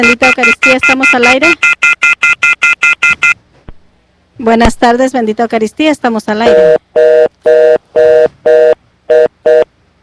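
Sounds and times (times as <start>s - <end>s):
speech: 0.0s - 2.9s, 4.4s - 9.7s
telephone line tone beeps after a dropped call: 0.0s - 3.4s, 6.4s - 9.7s.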